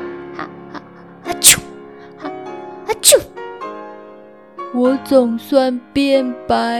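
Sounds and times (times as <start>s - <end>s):
voice imitating a lamb sneezing: 0.4s - 3.3s
speech: 1.4s - 1.6s, 3.0s - 3.4s, 4.7s - 6.7s.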